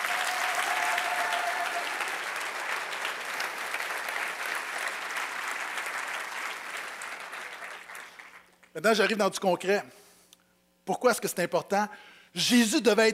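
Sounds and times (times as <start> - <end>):
audience applause: 0.0 - 8.6
speech: 8.8 - 10.0, 10.9 - 13.1.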